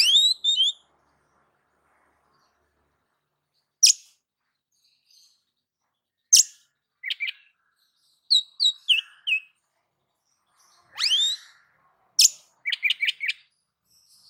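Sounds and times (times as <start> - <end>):
oriental magpie-robin singing: 0.0 - 0.8, 3.8 - 4.1, 6.3 - 9.6, 10.4 - 14.2.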